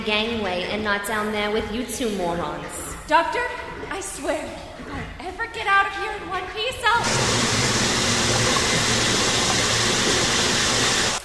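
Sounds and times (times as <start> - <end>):
speech: 0.0 - 7.6
running water pouring from a spout: 7.0 - 11.2.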